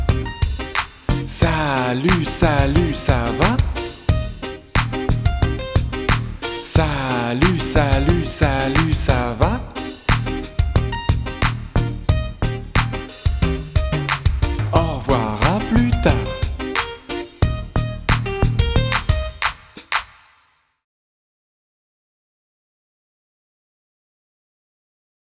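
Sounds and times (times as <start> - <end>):
karaoke backing track: 0.0 - 19.6.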